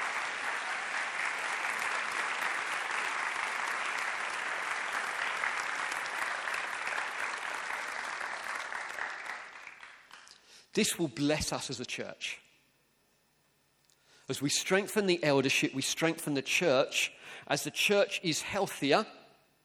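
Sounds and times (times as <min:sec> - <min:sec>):
church audience round of applause: 0:00.0 - 0:10.4
speech: 0:10.8 - 0:12.5, 0:14.3 - 0:19.2.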